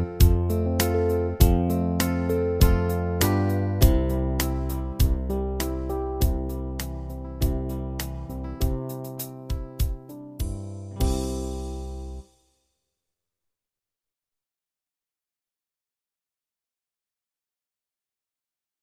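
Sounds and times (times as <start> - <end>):
blues song: 0.0 - 12.2.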